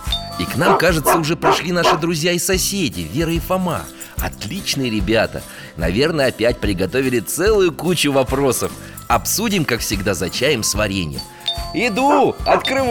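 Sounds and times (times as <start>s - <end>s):
speech: 0.4s - 12.8s
dog barking: 0.6s - 2.1s, 12.1s - 12.8s.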